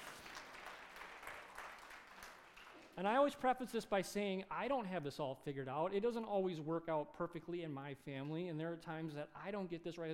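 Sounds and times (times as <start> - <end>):
faint audience clapping: 0.0 - 3.1
speech: 3.0 - 10.1.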